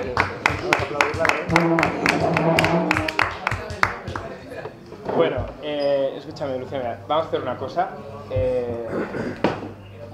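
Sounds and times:
audience applause: 0:00.0 - 0:04.3
speech: 0:01.2 - 0:02.8, 0:06.3 - 0:09.5.

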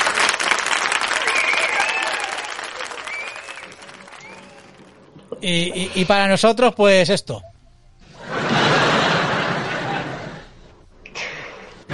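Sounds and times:
applause: 0:00.0 - 0:05.1
faint whistles: 0:01.2 - 0:04.8
speech: 0:05.4 - 0:07.5
laughter: 0:08.1 - 0:10.7.

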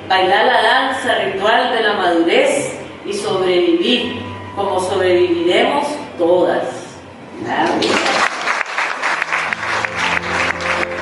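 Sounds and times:
speech: 0:00.1 - 0:06.8, 0:07.4 - 0:08.2
audience applause: 0:07.8 - 0:11.0.

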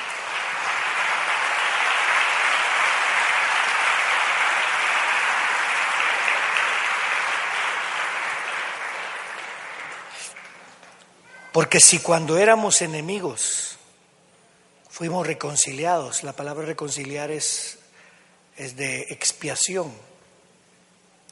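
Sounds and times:
audience applauding loudly: 0:00.0 - 0:11.2
speech: 0:11.6 - 0:13.6, 0:15.0 - 0:17.8, 0:18.6 - 0:20.2.

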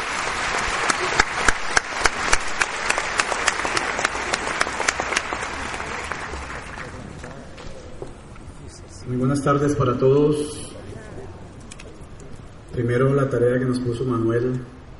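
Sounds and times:
audience applause: 0:00.0 - 0:07.5
speech: 0:09.2 - 0:10.7, 0:12.8 - 0:14.7.

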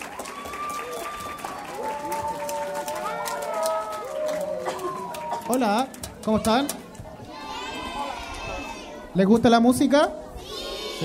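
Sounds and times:
audience applause: 0:00.0 - 0:06.8
voices calling and chattering: 0:01.6 - 0:11.0
speech: 0:05.5 - 0:06.8, 0:09.2 - 0:10.2.

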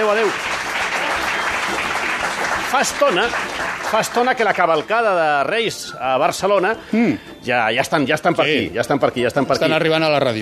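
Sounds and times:
speech: 0:00.0 - 0:00.6, 0:02.7 - 0:10.4
applause: 0:00.0 - 0:05.0.

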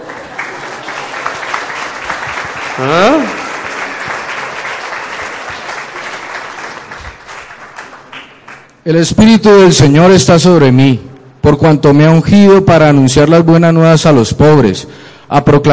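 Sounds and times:
audience applause: 0:00.0 - 0:08.7
speech: 0:02.8 - 0:03.4, 0:08.9 - 0:15.7.

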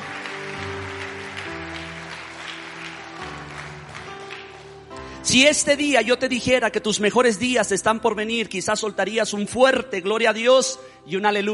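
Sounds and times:
audience applause: 0:00.0 - 0:04.9
sustained keyboard chords: 0:00.0 - 0:11.5
speech: 0:05.2 - 0:11.5.

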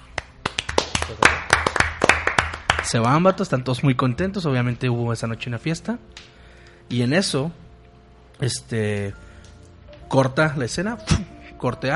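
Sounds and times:
applause, hands clapping: 0:00.0 - 0:03.5, 0:06.1 - 0:06.4
speech: 0:01.1 - 0:01.5, 0:02.8 - 0:06.3, 0:06.9 - 0:07.6, 0:08.4 - 0:09.3, 0:10.1 - 0:11.9.

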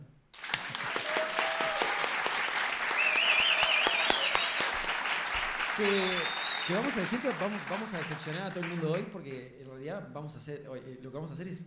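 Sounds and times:
audience applause: 0:00.4 - 0:09.2
speech: 0:05.8 - 0:11.6.

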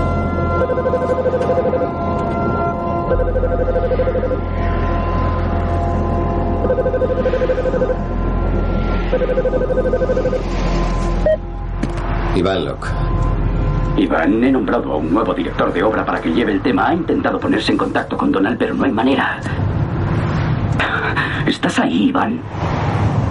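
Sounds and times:
car engine drone in heavy traffic near London: 0:00.0 - 0:23.3
telephone ringing in a car: 0:00.5 - 0:02.1, 0:03.0 - 0:04.4, 0:06.6 - 0:08.1, 0:09.1 - 0:10.4
speech: 0:14.2 - 0:19.6, 0:21.6 - 0:22.8.

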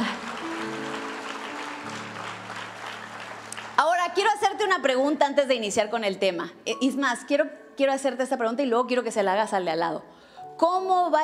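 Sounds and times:
audience applause: 0:00.0 - 0:04.5
speech: 0:04.2 - 0:11.2.

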